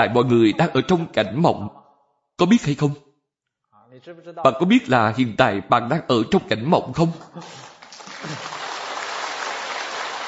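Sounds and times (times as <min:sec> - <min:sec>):
speech: 0:00.0 - 0:01.8, 0:02.4 - 0:03.0, 0:04.0 - 0:08.5
audience clapping: 0:07.0 - 0:10.2.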